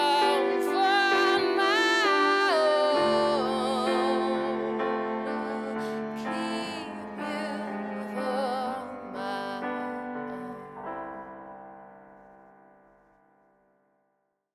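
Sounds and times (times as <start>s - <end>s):
cello: 0.0s - 11.3s
person singing: 0.0s - 11.4s
piano: 0.0s - 14.1s.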